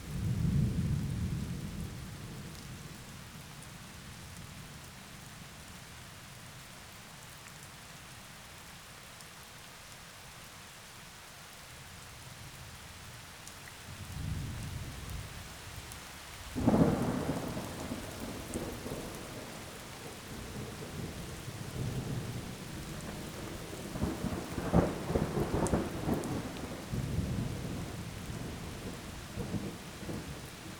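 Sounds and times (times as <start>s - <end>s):
heavy rain in forest: 0.0s - 30.7s
thunder in forest: 16.6s - 30.5s.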